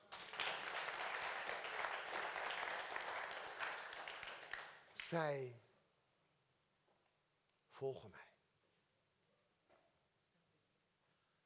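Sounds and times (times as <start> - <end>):
audience applause: 0.0 - 5.2
speech: 5.1 - 5.7, 7.8 - 8.3.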